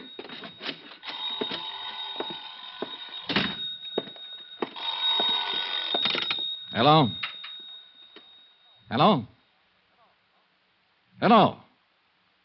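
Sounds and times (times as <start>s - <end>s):
old-style telephone bell ringing: 0.0s - 8.9s
speech: 6.8s - 7.2s, 8.9s - 9.4s, 11.2s - 11.6s.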